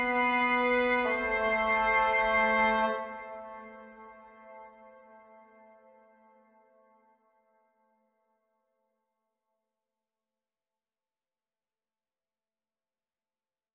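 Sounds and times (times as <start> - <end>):
brass instruments: 0.0 - 6.0
woodwind instruments: 0.0 - 7.5.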